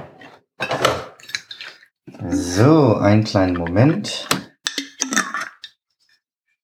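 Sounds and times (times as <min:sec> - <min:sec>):
cups and dishes clinking: 0:00.6 - 0:05.7
coffee pouring into milk: 0:00.7 - 0:05.7
speech: 0:02.6 - 0:04.4.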